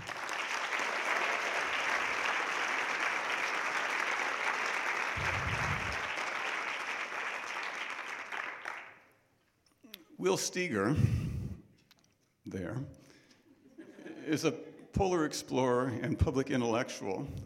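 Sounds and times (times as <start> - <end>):
audience applause: 0.0 - 9.0
speech: 10.2 - 11.4, 12.6 - 13.0, 14.3 - 17.4
laughter: 13.6 - 14.5.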